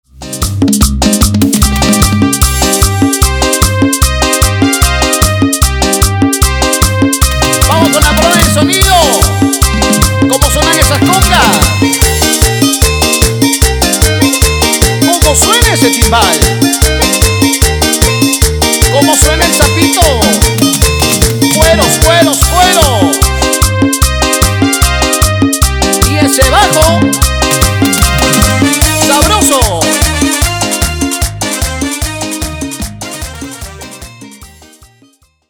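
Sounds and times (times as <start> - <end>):
instrumental chichero music: 0.1 - 35.4.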